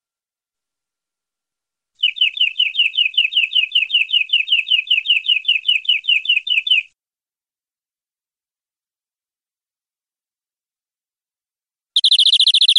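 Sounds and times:
canary singing long-duration rolling trill: 0:02.0 - 0:06.9, 0:12.0 - 0:12.7.

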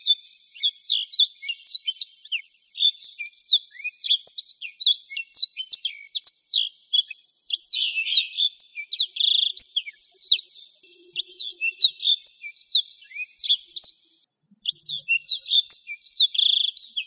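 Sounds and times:
black-throated canary twittering song: 0:00.0 - 0:17.0.

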